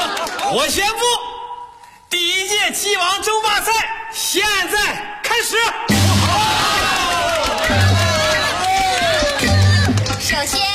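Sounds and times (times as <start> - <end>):
audience applause: 0.0 - 0.5, 6.0 - 10.4
speech: 0.5 - 1.3, 2.1 - 6.7.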